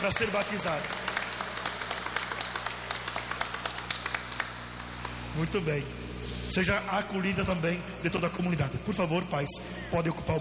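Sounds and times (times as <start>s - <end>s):
speech: 0.0s - 1.2s, 5.4s - 10.3s
audience applauding at a baptism: 0.0s - 5.2s
low constant hum: 0.0s - 10.3s.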